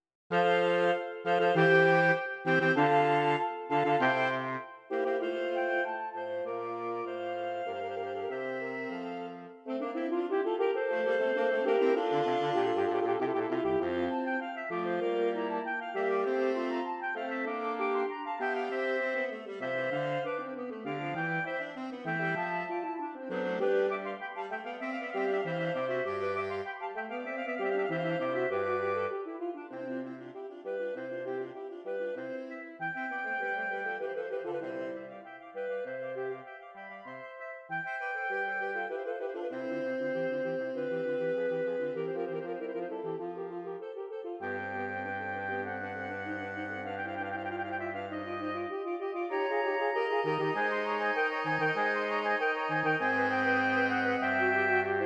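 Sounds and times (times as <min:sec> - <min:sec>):
saxophone playing an allegro fantasia: 0:00.3 - 0:55.0.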